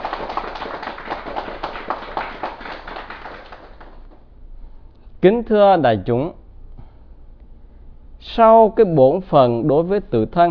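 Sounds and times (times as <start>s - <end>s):
crowd applauding: 0.0s - 4.2s
speech: 5.2s - 6.4s, 8.4s - 10.5s.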